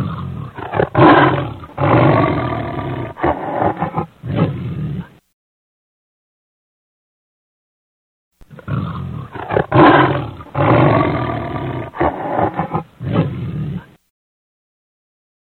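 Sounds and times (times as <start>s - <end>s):
lion roaring: 0.0s - 5.2s, 8.4s - 14.0s.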